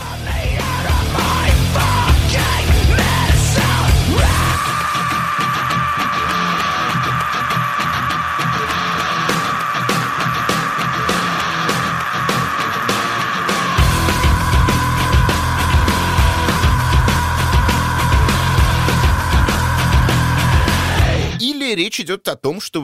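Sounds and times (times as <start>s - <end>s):
desperate scream in a rock song: 0.0s - 21.4s
speech: 22.2s - 22.8s.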